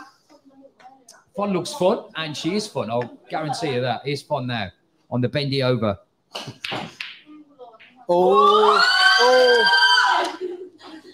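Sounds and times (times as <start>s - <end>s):
speech: 1.4s - 7.0s, 8.1s - 9.8s
high-pitched scream: 8.1s - 10.4s.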